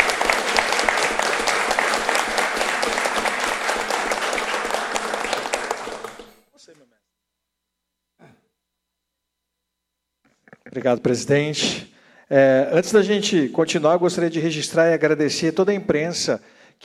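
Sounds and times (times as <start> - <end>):
audience applause: 0.0 - 6.4
speech: 10.8 - 16.8.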